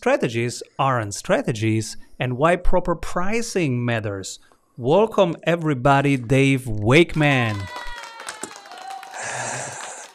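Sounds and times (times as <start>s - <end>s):
speech: 0.0s - 7.9s
applause sound effect: 7.0s - 10.1s.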